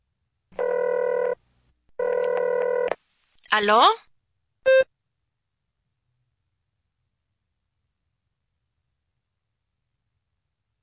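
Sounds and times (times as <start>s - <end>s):
telephone ringback tone while a call connects: 0.6s - 1.4s, 2.0s - 2.9s
speech: 3.6s - 4.0s.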